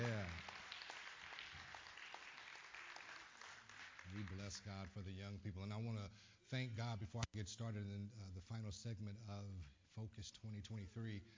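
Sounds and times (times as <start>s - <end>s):
audience clapping hands: 0.0s - 5.0s
speech: 4.1s - 11.3s.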